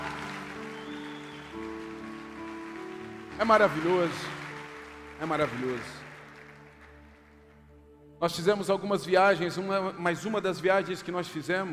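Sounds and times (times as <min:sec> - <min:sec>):
audience applause: 0:00.0 - 0:07.5
speech: 0:03.4 - 0:04.4, 0:05.2 - 0:06.0, 0:08.2 - 0:11.7.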